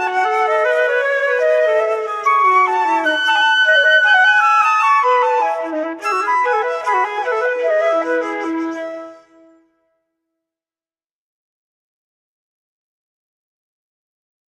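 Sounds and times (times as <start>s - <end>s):
two-part invention on two flutes: 0.0s - 9.8s.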